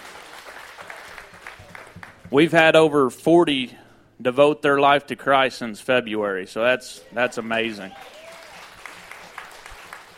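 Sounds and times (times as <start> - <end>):
crowd clapping in a large room: 0.0 - 2.6, 7.8 - 10.1
speech: 2.3 - 8.2.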